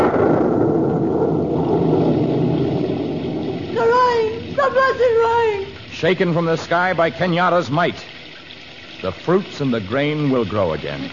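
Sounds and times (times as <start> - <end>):
rumble of thunder: 0.0 - 6.6
speech: 6.0 - 8.1, 9.0 - 11.1.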